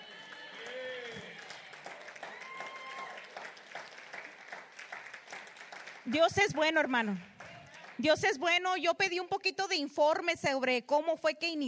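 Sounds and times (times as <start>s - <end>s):
church congregation applauding in worship: 0.0s - 8.2s
speech: 6.1s - 7.3s, 8.0s - 11.6s.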